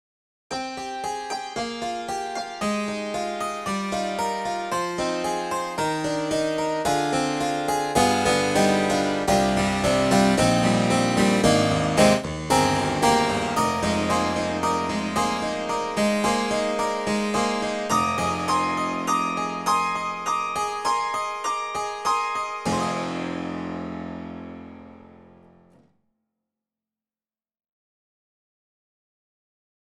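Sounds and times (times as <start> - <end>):
harpsichord: 0.5 - 25.6.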